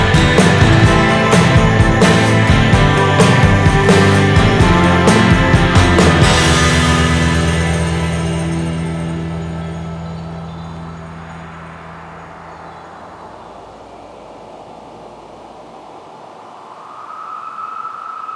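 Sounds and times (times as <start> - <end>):
instrumental music: 0.0 - 11.3.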